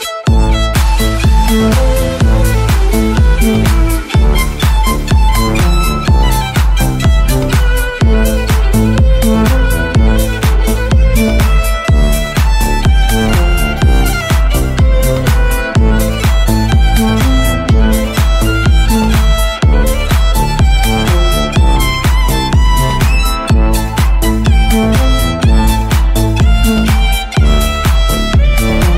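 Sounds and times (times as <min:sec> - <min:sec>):
violin song remix: 0:00.0 - 0:28.9.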